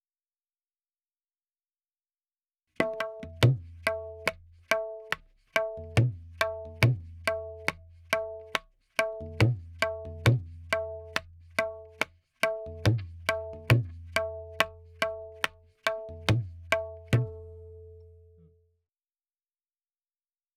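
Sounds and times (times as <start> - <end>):
tabla in 4/4 at 70: 2.8 - 18.5.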